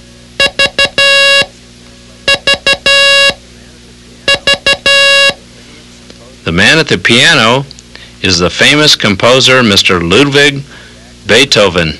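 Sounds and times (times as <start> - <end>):
Morse code letter V beeps: 0.4 - 1.5, 2.2 - 3.4, 4.3 - 5.4
speech: 6.5 - 11.9.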